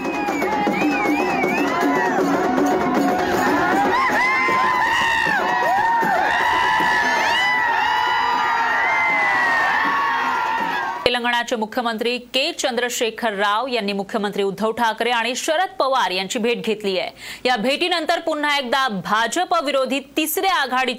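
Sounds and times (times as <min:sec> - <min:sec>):
shrill whoops: 0:00.0 - 0:02.3, 0:03.2 - 0:11.0
people shouting: 0:00.0 - 0:11.0
large crowd cheering at a bullock cart race: 0:00.0 - 0:11.1
speech: 0:11.5 - 0:20.9.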